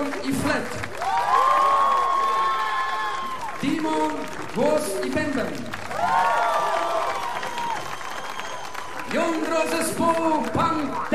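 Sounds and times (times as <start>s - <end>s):
audience applause: 0.0s - 11.1s
speech: 0.3s - 1.2s, 3.6s - 6.4s, 9.1s - 11.1s
audience cheering and whooping: 0.9s - 3.8s, 5.8s - 9.7s.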